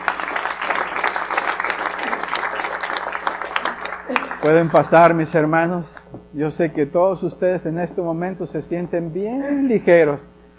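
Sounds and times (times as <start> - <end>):
audience applauding: 0.0 - 5.3
speech: 4.1 - 10.3.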